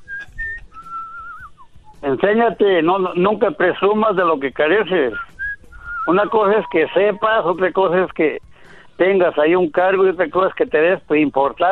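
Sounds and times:
pet bird whistling: 0.0s - 2.0s, 5.1s - 7.2s
speech: 2.1s - 5.3s, 6.1s - 8.4s, 9.0s - 11.6s.

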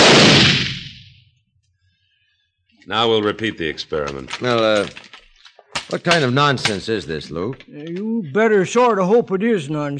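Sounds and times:
old blunderbuss gunshot firing a gold nugget into rock: 0.0s - 1.2s
speech: 2.9s - 5.2s, 5.9s - 9.9s.

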